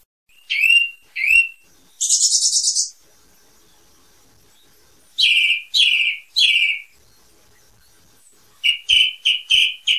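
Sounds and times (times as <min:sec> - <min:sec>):
song thrush singing: 0:00.3 - 0:03.0, 0:04.6 - 0:07.2, 0:08.6 - 0:09.9.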